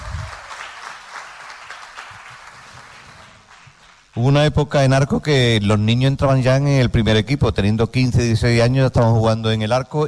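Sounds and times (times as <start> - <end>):
audience applause: 0.0 - 4.2
speech: 4.2 - 10.0.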